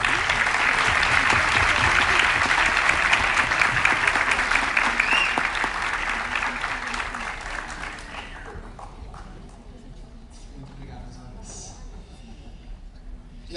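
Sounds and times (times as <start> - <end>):
audience applause: 0.0 - 9.5.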